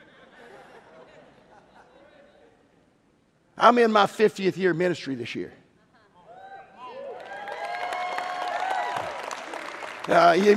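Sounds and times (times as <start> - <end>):
laughter: 0.0 - 2.6, 10.1 - 10.5
speech: 3.6 - 5.6, 10.1 - 10.5
audience clapping: 7.1 - 10.5.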